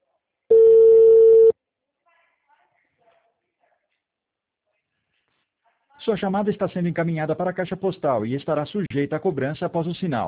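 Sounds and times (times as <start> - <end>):
telephone ringback tone on an outgoing call: 0.5 - 1.5
speech: 6.0 - 10.2.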